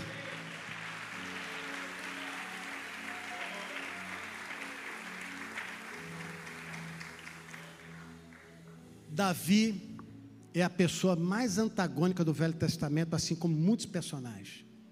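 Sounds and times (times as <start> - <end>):
audience applauding: 0.0 - 8.9
speech: 9.2 - 9.9, 10.6 - 14.7.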